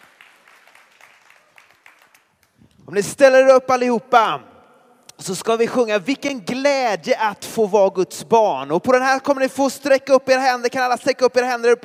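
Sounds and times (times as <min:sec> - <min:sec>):
applause: 0:00.0 - 0:02.7
speech: 0:02.9 - 0:04.5, 0:05.2 - 0:11.8.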